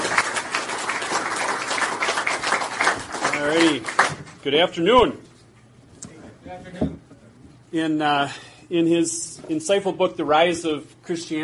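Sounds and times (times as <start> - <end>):
audience applause: 0.0 - 4.4
speech: 3.4 - 5.3, 6.5 - 6.9, 7.7 - 11.4.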